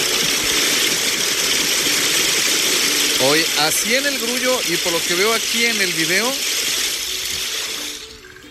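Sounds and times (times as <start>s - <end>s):
heavy rain: 0.0s - 8.2s
speech: 3.2s - 6.6s.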